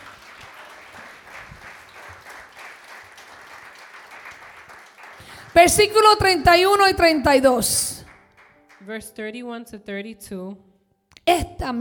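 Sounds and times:
audience applause: 0:00.0 - 0:06.9, 0:08.0 - 0:08.8
speech: 0:05.5 - 0:07.9, 0:08.9 - 0:10.7, 0:11.3 - 0:11.7.

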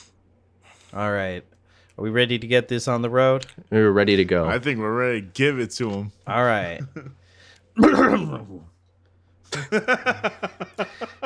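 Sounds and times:
speech: 0:00.9 - 0:07.2, 0:07.8 - 0:08.7, 0:09.5 - 0:11.2
laughter: 0:06.8 - 0:07.2, 0:09.5 - 0:11.2
person clearing throat with a harrumph: 0:07.8 - 0:08.4.

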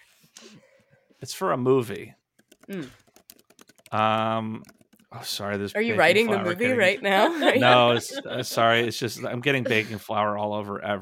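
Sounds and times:
speech: 0:01.2 - 0:03.0, 0:03.9 - 0:11.0
keys punched on a computer keyboard covered in baking flour: 0:02.4 - 0:04.0
laughter: 0:05.9 - 0:10.6.

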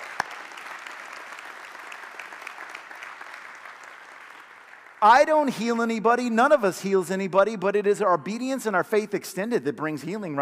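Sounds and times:
audience hand clapping: 0:00.0 - 0:05.5
speech: 0:05.0 - 0:10.3.

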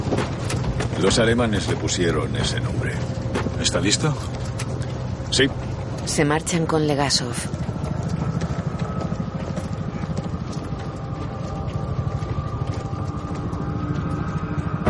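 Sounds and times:
helicopter flying overhead: 0:00.0 - 0:14.8
speech: 0:01.0 - 0:04.5, 0:05.3 - 0:07.7.

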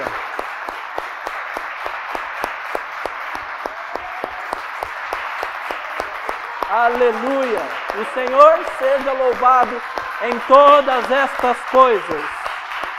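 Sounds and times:
audience applause: 0:00.0 - 0:12.9
sharper rhythmic claps: 0:00.0 - 0:12.9
speech: 0:06.8 - 0:12.4.

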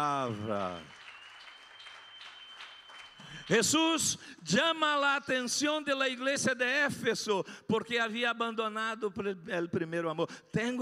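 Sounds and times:
speech: 0:00.0 - 0:01.0, 0:03.5 - 0:10.7
audience applause: 0:00.0 - 0:03.8.

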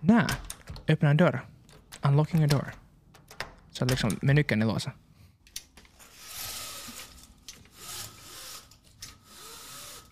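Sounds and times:
speech: 0:00.1 - 0:02.8, 0:03.8 - 0:05.0
window blinds being closed: 0:05.9 - 0:10.1.

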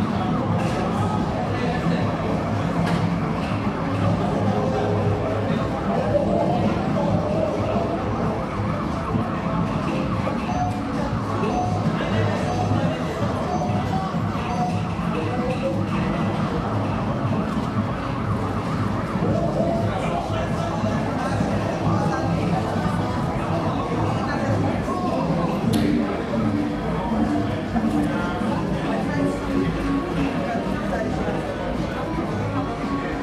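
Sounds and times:
crowd chatter in a busy gaming arcade: 0:00.0 - 0:33.2
bright clicks and beeps: 0:09.9 - 0:15.8.

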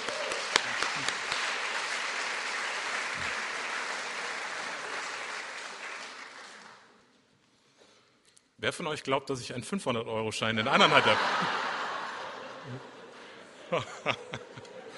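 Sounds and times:
audience applause: 0:00.0 - 0:06.9
speech: 0:08.6 - 0:11.6, 0:13.7 - 0:14.4
laughter: 0:10.6 - 0:14.9.

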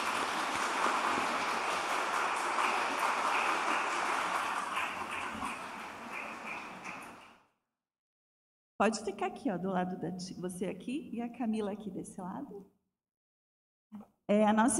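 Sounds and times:
audience applause: 0:00.0 - 0:07.3
speech: 0:08.8 - 0:12.8, 0:13.9 - 0:14.7.

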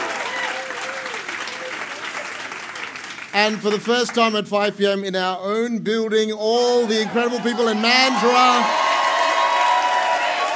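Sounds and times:
church congregation applause: 0:00.0 - 0:04.4, 0:06.9 - 0:10.5
speech: 0:03.4 - 0:08.8.

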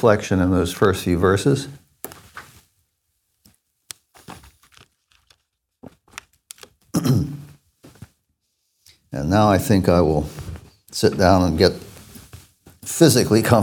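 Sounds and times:
speech: 0:00.0 - 0:01.8, 0:09.2 - 0:10.4, 0:11.0 - 0:11.9, 0:12.9 - 0:13.6
plastic water bottle crinkling: 0:03.4 - 0:08.2
person swallowing water: 0:06.9 - 0:07.6.

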